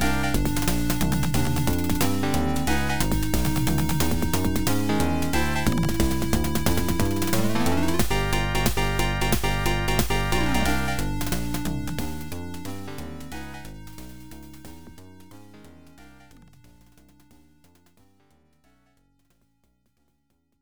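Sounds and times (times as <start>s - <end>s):
suspense music: 0.0s - 14.6s.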